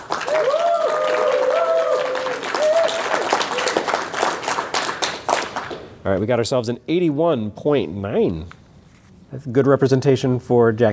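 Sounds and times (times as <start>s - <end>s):
audience cheering and applause: 0.0s - 6.0s
speech: 6.0s - 8.6s, 9.3s - 10.9s.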